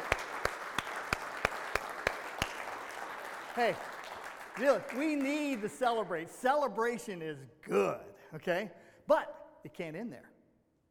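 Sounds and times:
audience applause: 0.0s - 6.0s
speech: 3.6s - 4.0s, 4.6s - 10.3s.

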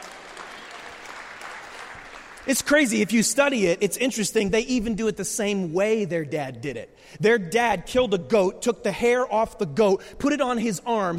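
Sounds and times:
audience clapping: 0.0s - 3.0s
speech: 2.4s - 11.1s.

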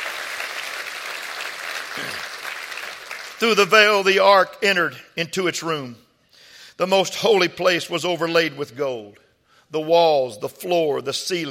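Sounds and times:
audience clapping hands: 0.0s - 4.0s
speech: 2.0s - 2.3s, 3.4s - 6.0s, 6.8s - 11.4s.

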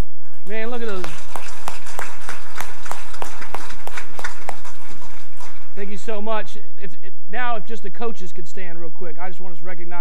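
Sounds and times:
speech: 0.5s - 1.2s, 6.0s - 9.9s
audience applause: 0.9s - 5.8s.

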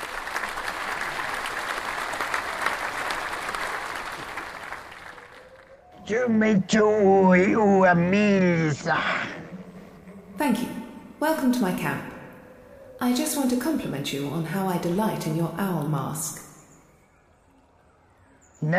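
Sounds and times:
audience applause: 0.0s - 5.7s
speech: 6.1s - 9.3s, 10.4s - 12.1s, 13.0s - 16.4s, 18.6s - 18.7s.

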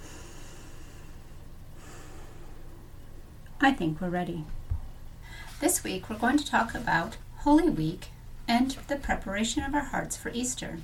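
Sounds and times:
deep breath: 0.0s - 2.9s, 5.2s - 5.6s
speech: 3.6s - 4.6s, 5.6s - 10.8s.

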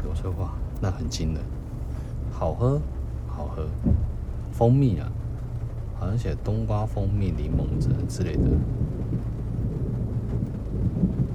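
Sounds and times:
rain: 0.0s - 11.3s
speech: 0.2s - 1.6s, 2.3s - 5.2s, 6.0s - 9.3s
thunder: 3.8s - 4.5s, 7.1s - 11.3s.

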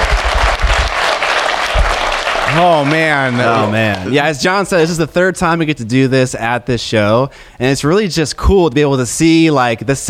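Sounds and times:
live audience clapping: 0.0s - 4.3s
speech: 2.6s - 10.0s.

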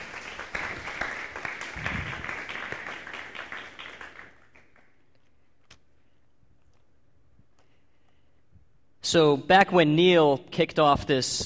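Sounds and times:
audience applause: 0.0s - 4.9s
speech: 9.1s - 11.4s.

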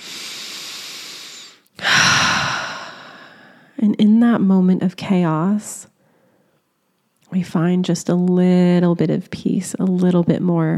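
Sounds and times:
person breathing: 0.0s - 3.8s, 6.0s - 6.6s
speech: 3.9s - 5.9s, 7.3s - 10.7s.

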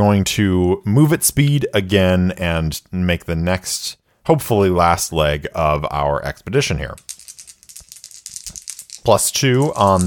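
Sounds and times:
speech: 0.0s - 7.2s, 9.0s - 10.0s
dice rolling: 6.8s - 10.0s.

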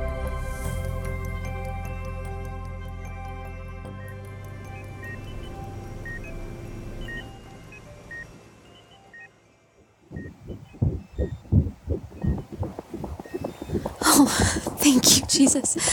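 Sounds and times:
low electronic hum: 0.0s - 15.9s
faint intermittent beeps: 3.9s - 15.9s
strong rapid heartbeat: 10.1s - 15.9s
speech: 14.2s - 15.9s.

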